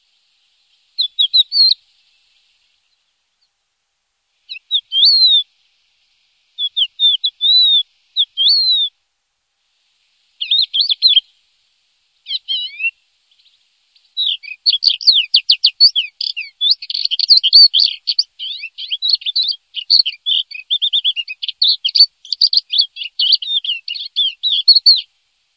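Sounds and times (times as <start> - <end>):
bird song: 0.6 - 3.6, 4.5 - 5.5, 6.6 - 9.0, 10.4 - 11.3, 12.2 - 25.1.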